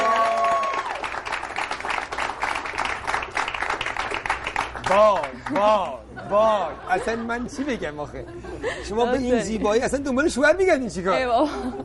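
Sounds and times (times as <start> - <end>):
audience applause welcoming a guest: 0.0 - 5.8
speech: 4.9 - 11.8.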